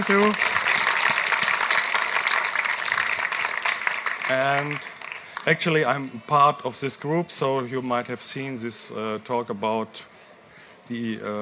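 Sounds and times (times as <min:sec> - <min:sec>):
speech: 0:00.0 - 0:00.5, 0:04.3 - 0:10.1, 0:10.9 - 0:11.4
audience applause: 0:00.0 - 0:05.7.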